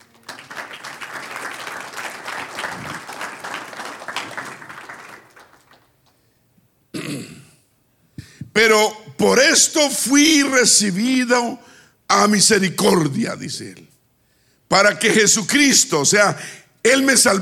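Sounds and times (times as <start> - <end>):
audience applause: 0.0 - 6.0
speech: 8.6 - 13.9, 14.7 - 17.3.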